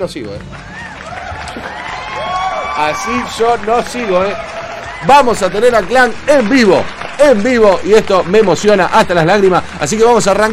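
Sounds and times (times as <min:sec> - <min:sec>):
speech: 0:00.0 - 0:00.7, 0:01.5 - 0:01.8, 0:02.8 - 0:10.5
crowd clapping: 0:00.0 - 0:10.5
cheering voices: 0:00.5 - 0:08.4.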